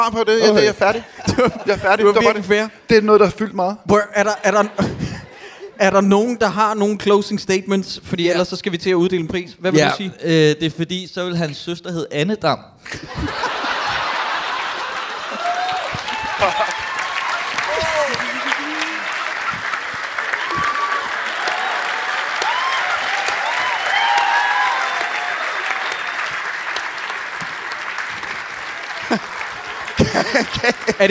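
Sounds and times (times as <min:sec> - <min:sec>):
speech: 0:00.0 - 0:05.0, 0:05.8 - 0:13.5, 0:16.4 - 0:16.7, 0:29.1 - 0:29.3, 0:30.4 - 0:31.0
laughter: 0:00.4 - 0:02.6, 0:04.0 - 0:06.1, 0:12.8 - 0:22.0, 0:28.7 - 0:31.0
audience snapping fingers: 0:14.8 - 0:31.0.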